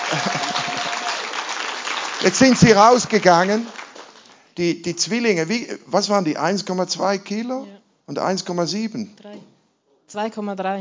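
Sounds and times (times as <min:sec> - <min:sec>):
laughter: 0:00.0 - 0:01.1
audience applause: 0:00.0 - 0:04.5
speech: 0:00.1 - 0:00.5, 0:02.2 - 0:03.8, 0:04.6 - 0:10.7.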